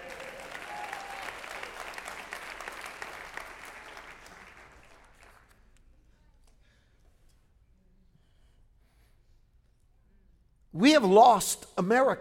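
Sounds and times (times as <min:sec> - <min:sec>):
crowd applauding: 0:00.0 - 0:05.5
speech: 0:10.8 - 0:12.1.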